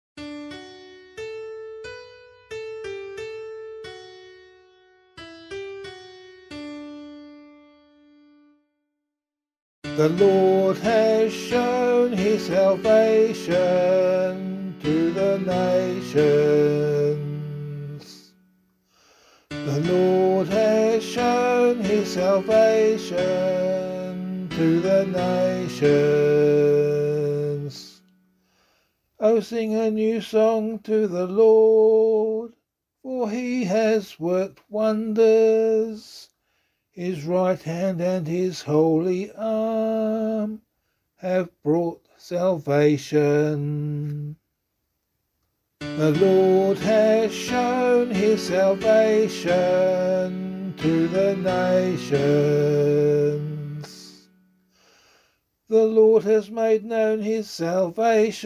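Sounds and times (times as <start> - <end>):
psalm in C sung by voice: 9.8 - 18.4, 19.4 - 28.2, 29.2 - 36.4, 37.0 - 40.6, 41.2 - 44.4, 45.8 - 54.4, 55.7 - 58.4.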